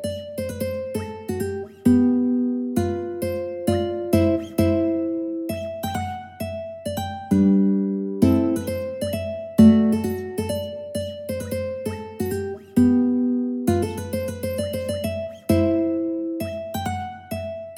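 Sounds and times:
mandolin playing polska: 0.0s - 17.7s.

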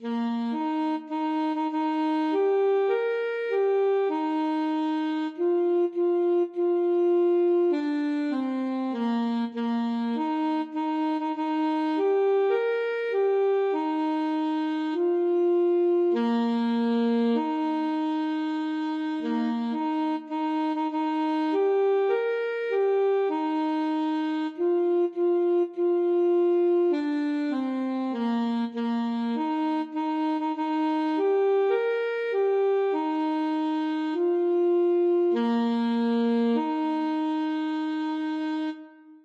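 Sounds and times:
alto saxophone: 0.0s - 39.2s.

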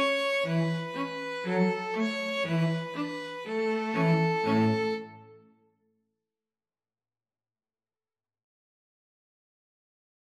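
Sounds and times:
string trio: 0.0s - 5.4s.

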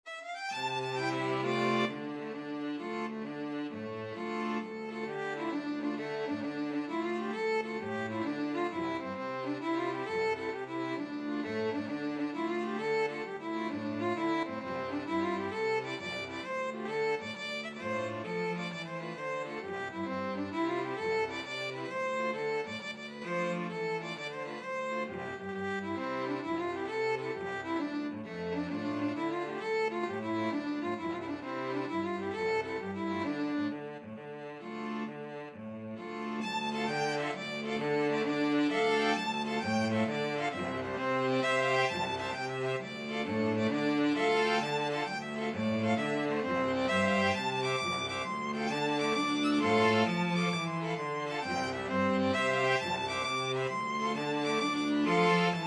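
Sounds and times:
string quartet: 0.0s - 55.6s.

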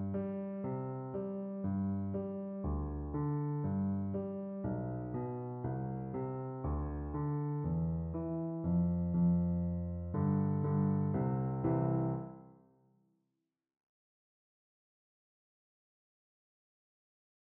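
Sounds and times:
piano duet: 0.0s - 12.6s.

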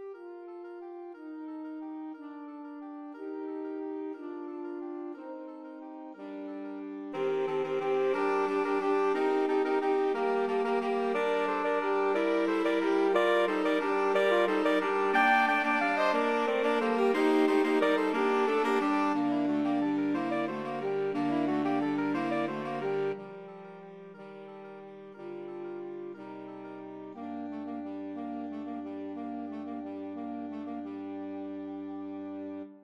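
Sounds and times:
saxophone quartet playing: 7.1s - 32.7s.

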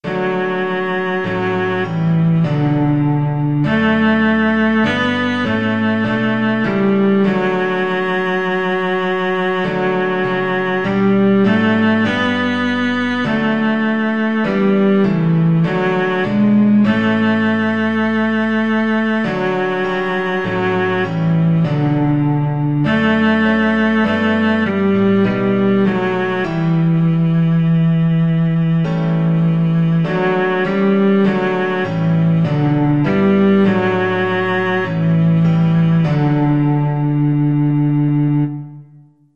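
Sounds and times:
violoncello: 0.0s - 39.1s.

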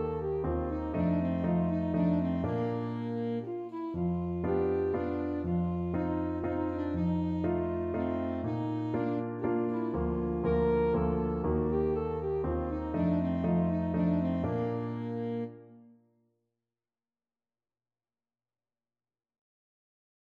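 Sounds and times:
dance piece on alto saxophone: 0.0s - 16.0s.

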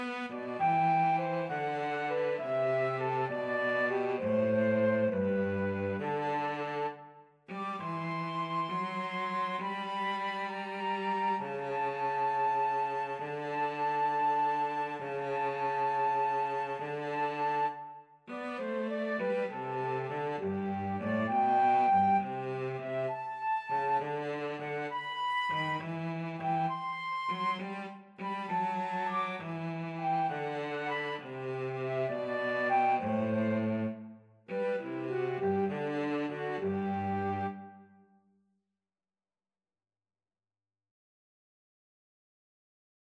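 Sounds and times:
cello in a pastorale duet: 0.0s - 37.9s
flute in a pastorale duet: 0.0s - 38.1s.

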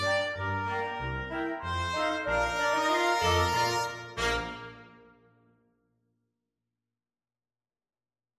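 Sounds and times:
flexible mixed ensemble of five players: 0.0s - 5.1s.

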